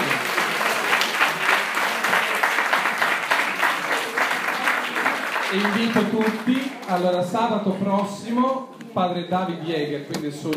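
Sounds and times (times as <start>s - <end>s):
audience applause: 0.0s - 7.2s
speech: 5.5s - 10.5s.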